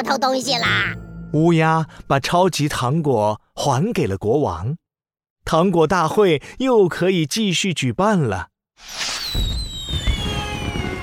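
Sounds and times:
speech: 0.0 - 4.8, 5.5 - 9.5
firework whistles: 8.8 - 11.0.

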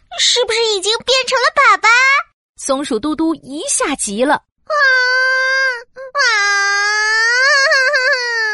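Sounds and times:
speech: 0.2 - 4.9
child crying loudly: 4.7 - 8.5.

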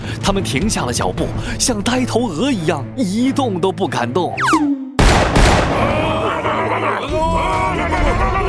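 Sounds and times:
speech: 0.3 - 4.7
gunshot: 5.0 - 6.6
laughter: 5.8 - 8.4.

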